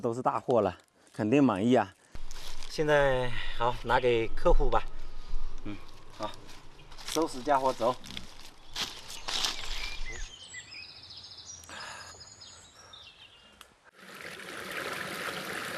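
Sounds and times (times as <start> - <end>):
speech: 0.0 - 2.0, 2.7 - 4.9, 5.6 - 8.3
flowing stream water: 13.9 - 15.7.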